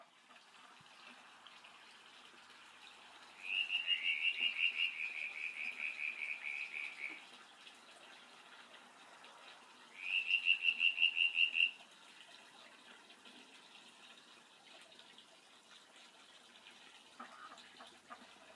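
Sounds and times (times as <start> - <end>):
frog calling: 3.4 - 7.2, 10.0 - 11.8.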